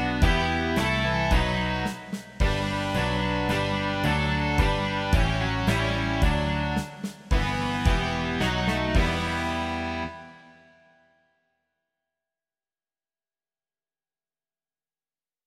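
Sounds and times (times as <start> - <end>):
rock music: 0.0 - 10.5.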